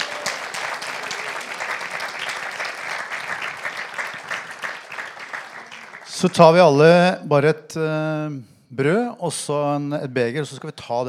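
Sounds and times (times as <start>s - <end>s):
applause: 0.0s - 6.5s
speech: 6.2s - 11.0s.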